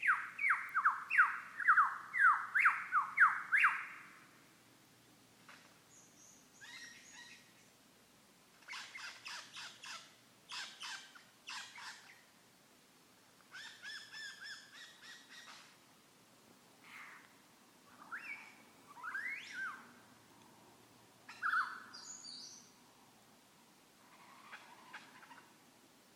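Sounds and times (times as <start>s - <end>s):
lyrebird: 0.0s - 4.2s, 5.5s - 7.7s, 8.6s - 12.3s, 13.5s - 15.8s, 16.8s - 20.0s, 21.3s - 22.7s, 24.0s - 25.6s.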